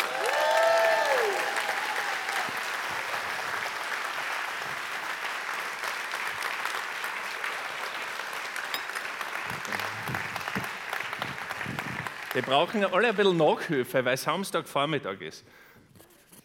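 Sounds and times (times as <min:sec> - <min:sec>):
audience applause: 0:00.0 - 0:13.7
speech: 0:12.4 - 0:15.7.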